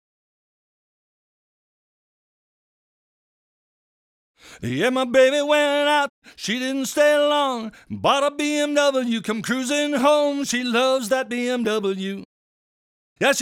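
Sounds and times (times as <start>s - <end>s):
vocals: 4.4s - 12.3s, 13.2s - 13.4s.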